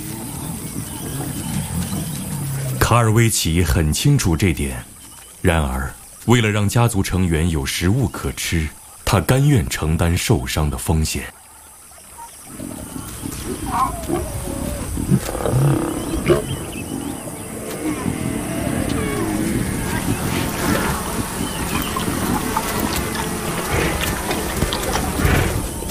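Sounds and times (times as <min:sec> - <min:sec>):
lions giving deep rasping roars and growls: 0:00.0 - 0:02.9, 0:12.5 - 0:25.8
speech: 0:02.9 - 0:11.4, 0:13.7 - 0:14.4.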